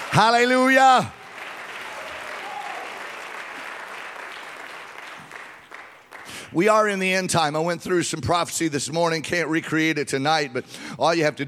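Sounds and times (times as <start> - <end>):
audience clapping hands: 0.0 - 6.8
speech: 0.2 - 1.2, 6.5 - 11.4.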